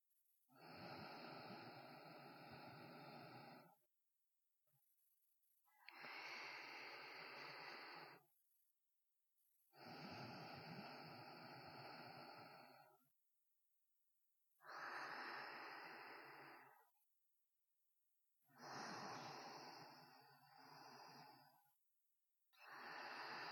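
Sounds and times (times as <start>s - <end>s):
sparse sleeping breaths: 0.6s - 3.8s, 5.8s - 8.2s, 9.8s - 13.0s, 14.6s - 17.0s, 18.4s - 21.7s, 22.5s - 23.4s.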